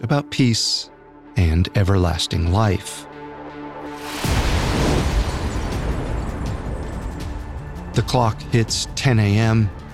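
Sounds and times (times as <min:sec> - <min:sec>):
speech: 0:00.0 - 0:03.1, 0:08.0 - 0:09.8
crackling debris: 0:04.0 - 0:07.5
bomb blast: 0:04.2 - 0:06.8.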